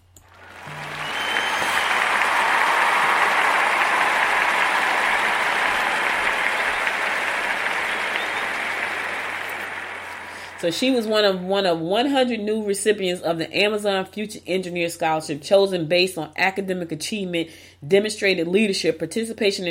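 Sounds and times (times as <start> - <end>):
audience applause: 0.2 - 11.0
speech: 10.6 - 19.6.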